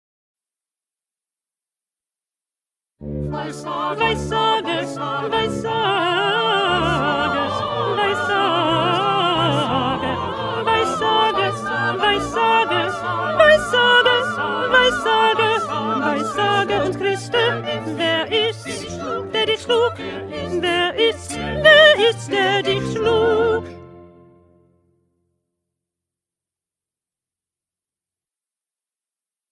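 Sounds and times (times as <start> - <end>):
second alto part: 3.0 - 24.6.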